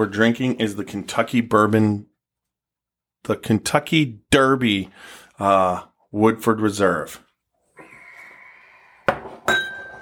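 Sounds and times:
speech: 0.0 - 2.1, 3.2 - 7.2
glass clinks: 9.4 - 10.0.

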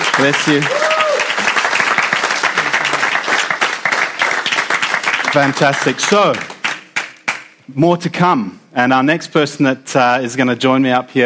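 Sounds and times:
audience applause: 0.0 - 7.4
speech: 0.2 - 0.8, 5.3 - 6.5, 7.7 - 11.2.

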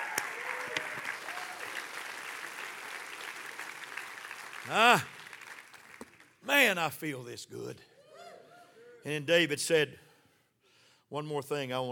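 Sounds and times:
audience clapping hands: 0.0 - 6.6
speech: 4.7 - 5.1, 6.5 - 7.9, 9.0 - 10.1, 11.1 - 11.8.

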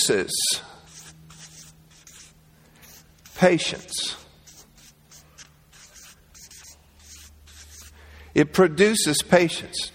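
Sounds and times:
speech: 0.0 - 0.8, 3.4 - 4.2, 8.4 - 9.9
writing by hand: 0.9 - 8.0.

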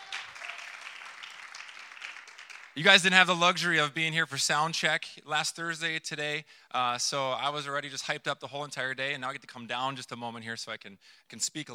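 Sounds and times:
audience applause: 0.0 - 2.9
speech: 2.8 - 11.7.

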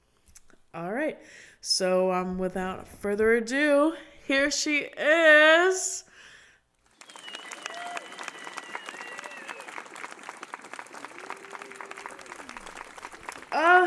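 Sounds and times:
speech: 0.7 - 6.1
crowd applauding: 6.8 - 13.8
people whooping and cheering: 6.9 - 13.8.

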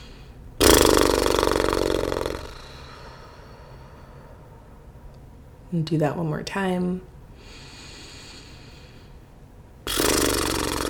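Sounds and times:
person blowing lip trill imitating a horse's snort: 0.6 - 3.2, 9.9 - 10.8
speech: 5.7 - 7.6.

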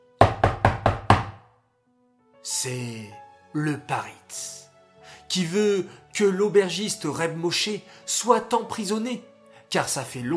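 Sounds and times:
knocking on the door of an inn: 0.2 - 1.5
speech: 2.4 - 4.7, 5.3 - 10.3.

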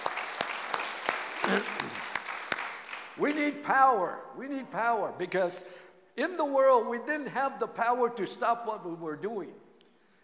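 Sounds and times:
audience applause: 0.0 - 3.2
speech: 1.5 - 2.1, 3.2 - 9.6.

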